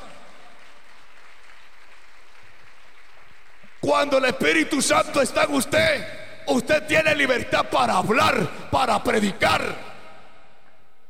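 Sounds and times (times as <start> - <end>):
audience clapping: 0.0 - 4.4
speech: 3.8 - 9.9.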